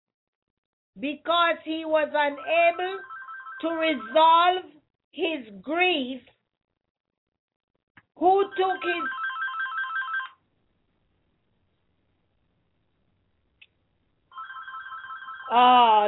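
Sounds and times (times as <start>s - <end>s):
speech: 1.0s - 6.4s, 8.2s - 9.2s, 15.5s - 16.0s
telephone ringing: 2.3s - 4.5s, 8.4s - 10.4s, 14.3s - 16.0s.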